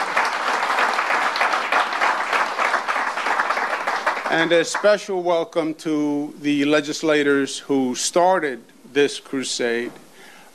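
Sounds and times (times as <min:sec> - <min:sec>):
audience applause: 0:00.0 - 0:05.0
speech: 0:04.3 - 0:10.0.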